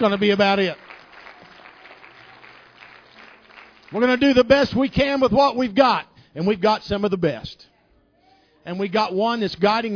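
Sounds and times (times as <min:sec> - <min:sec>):
speech: 0:00.0 - 0:00.8, 0:03.9 - 0:07.7, 0:08.6 - 0:09.9
audience applause: 0:00.0 - 0:04.5.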